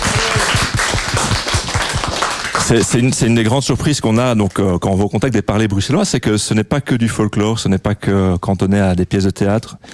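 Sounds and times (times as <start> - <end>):
group applauding: 0.0 - 3.2
speech: 2.7 - 9.9.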